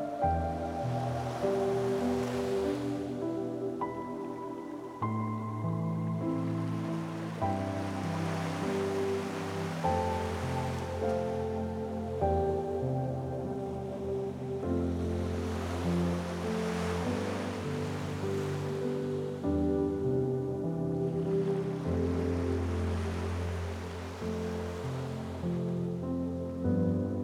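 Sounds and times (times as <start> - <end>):
serene ocean waves: 0.0 - 27.2
soothing piano melody: 0.0 - 27.2.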